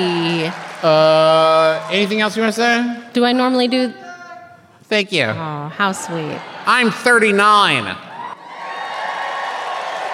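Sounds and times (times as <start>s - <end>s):
live audience cheering and whooping: 0.0s - 2.4s, 5.9s - 7.4s, 8.0s - 10.1s
speech: 0.0s - 4.0s, 4.9s - 8.1s.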